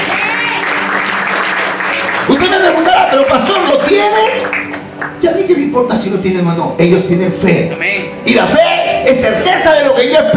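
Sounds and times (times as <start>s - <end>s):
audience applause: 0.0s - 5.3s
speech: 3.2s - 4.6s, 5.2s - 10.3s.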